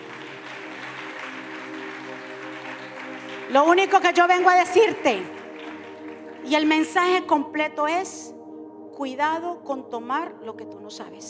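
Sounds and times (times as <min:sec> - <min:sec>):
audience applause: 0:00.0 - 0:07.0
sustained musical chord: 0:00.0 - 0:11.2
speech: 0:03.5 - 0:05.4, 0:06.4 - 0:08.4, 0:09.0 - 0:11.2.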